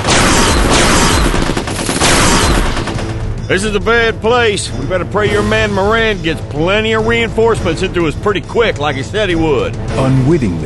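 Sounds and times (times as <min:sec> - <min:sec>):
heavy gunfire in a jungle firefight in an audio drama: 0:00.0 - 0:03.2
speech: 0:03.5 - 0:10.6.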